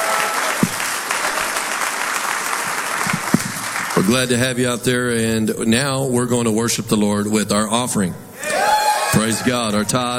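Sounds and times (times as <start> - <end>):
audience hand clapping: 0.0 - 4.4
speech: 4.0 - 8.3, 9.2 - 10.1.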